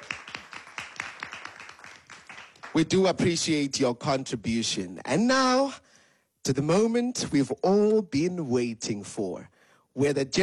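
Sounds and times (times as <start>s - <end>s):
small audience clapping at a stage event: 0.0s - 3.1s
speech: 2.8s - 5.8s, 6.4s - 10.4s.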